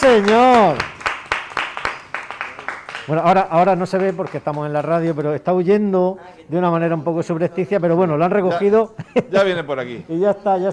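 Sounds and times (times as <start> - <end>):
audience applause: 0.0 - 5.0
speech: 0.1 - 0.9, 3.1 - 10.7
laughter: 8.5 - 10.7.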